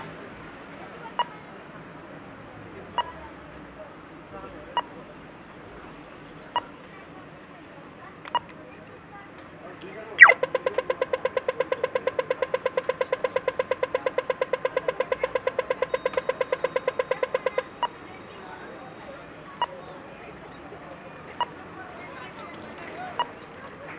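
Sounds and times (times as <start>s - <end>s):
pedestrian crossing at traffic lights: 1.0s - 1.6s, 2.7s - 3.2s, 10.2s - 22.1s, 23.1s - 23.5s.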